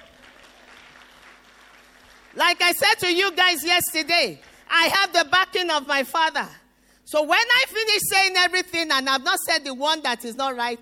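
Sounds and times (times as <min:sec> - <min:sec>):
crowd clapping: 0:00.0 - 0:02.6, 0:03.8 - 0:04.7
speech: 0:02.3 - 0:10.8.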